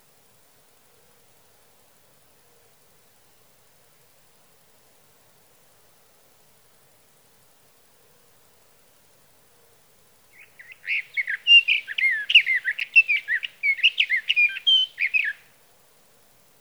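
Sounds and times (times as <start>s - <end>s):
sage thrasher singing through the night: 10.4s - 15.4s.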